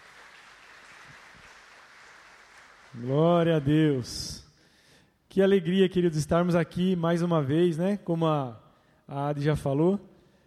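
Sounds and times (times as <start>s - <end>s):
audience applauding: 0.0s - 3.7s
speech: 3.0s - 4.4s, 5.3s - 10.1s.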